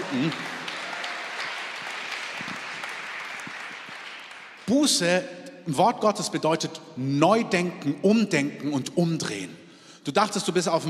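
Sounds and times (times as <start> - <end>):
audience applause: 0.0 - 4.8
speech: 0.1 - 0.5, 4.7 - 10.8.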